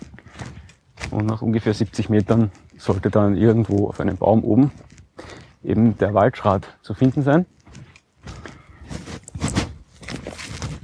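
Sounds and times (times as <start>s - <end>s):
footsteps crunching along a forest path beside a stream: 0.0s - 10.8s
speech: 1.2s - 7.6s.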